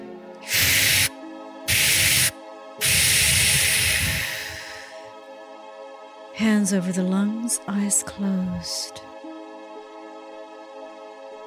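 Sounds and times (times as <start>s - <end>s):
forceful cleansing exhales: 0.4s - 1.1s, 1.7s - 5.1s
speech: 6.4s - 9.1s.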